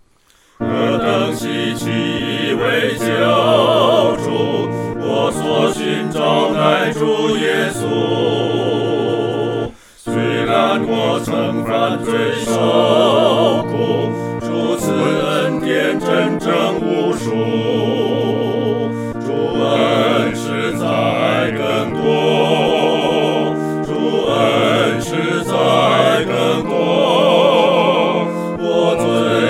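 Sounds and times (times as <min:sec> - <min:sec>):
four-part choir singing: 0:00.6 - 0:29.4.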